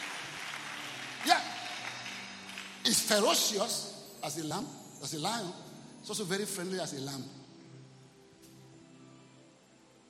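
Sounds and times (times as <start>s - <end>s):
audience clapping hands: 0.0s - 3.6s
speech: 2.8s - 7.4s.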